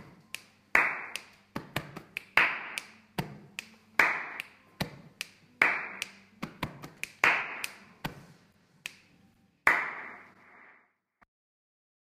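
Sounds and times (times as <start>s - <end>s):
body percussion: 0.0s - 9.1s.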